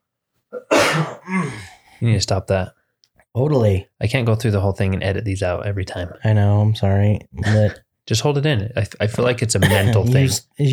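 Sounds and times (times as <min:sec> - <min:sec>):
cough: 0:00.6 - 0:01.6, 0:09.6 - 0:09.9
speech: 0:02.0 - 0:02.8, 0:03.4 - 0:10.7.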